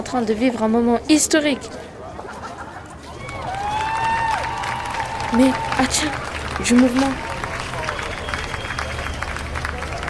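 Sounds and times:
speech: 0.1s - 2.0s, 5.3s - 7.3s
laughter: 2.1s - 3.3s
crowd cheering at a rally: 3.0s - 10.0s.

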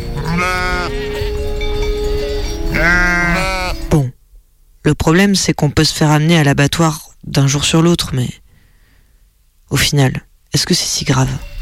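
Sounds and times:
sheep bleating: 0.0s - 3.9s
speech: 4.8s - 8.4s, 9.7s - 11.6s.

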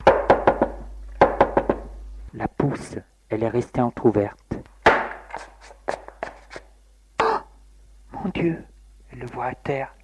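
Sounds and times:
knocking on a door: 0.0s - 2.0s
speech: 2.4s - 4.4s, 8.2s - 10.0s.

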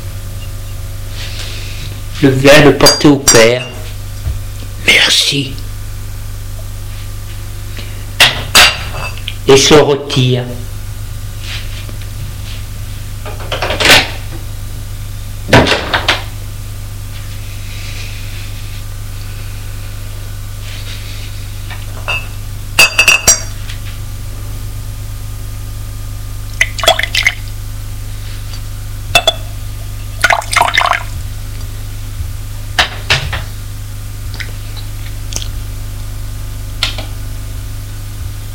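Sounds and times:
steady low hum: 0.0s - 38.5s
speech: 2.2s - 3.7s, 5.3s - 5.6s, 9.5s - 10.7s
glass and bottle clinking: 29.2s - 29.4s
bourbon poured into a glass: 30.2s - 31.1s.

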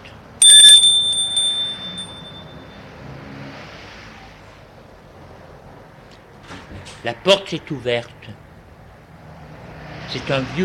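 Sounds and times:
doorbell ringing: 0.4s - 2.8s
speech: 7.0s - 8.4s, 10.1s - 10.6s.

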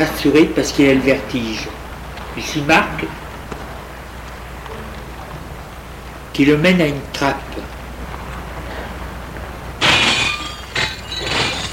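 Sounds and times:
speech: 0.0s - 1.8s, 2.4s - 3.2s, 6.4s - 7.7s
window glass shattering: 9.8s - 11.7s.

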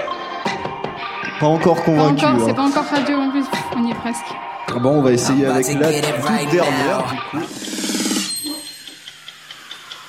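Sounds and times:
speech: 1.4s - 7.8s
clock ticking: 5.9s - 10.0s.

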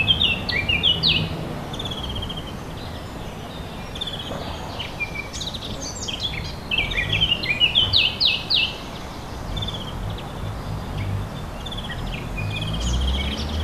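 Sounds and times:
warbler song: 0.0s - 13.6s.

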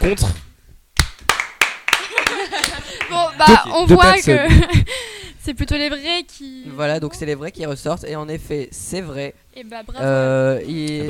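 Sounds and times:
speech: 0.0s - 0.4s, 3.1s - 11.0s
audience applause: 1.3s - 3.3s
laughter: 2.0s - 3.6s.

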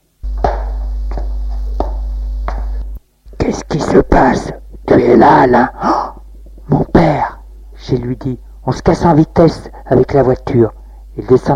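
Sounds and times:
footsteps in a house: 0.2s - 3.4s
speech: 3.8s - 6.0s, 7.9s - 11.5s.

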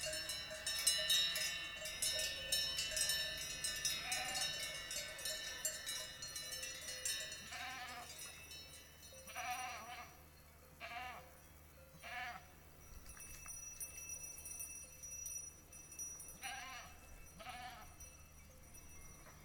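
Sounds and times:
many livestock bells clanking on grazing farm animals: 0.0s - 19.4s
animal bleats: 4.0s - 4.7s, 7.5s - 8.2s, 9.3s - 10.2s, 10.8s - 11.3s, 12.0s - 12.6s, 16.4s - 18.0s.

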